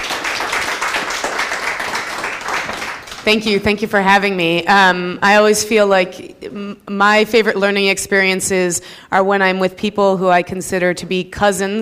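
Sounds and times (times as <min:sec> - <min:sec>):
audience applause welcoming a speaker to the stage: 0:00.0 - 0:03.3
speech: 0:03.2 - 0:11.8.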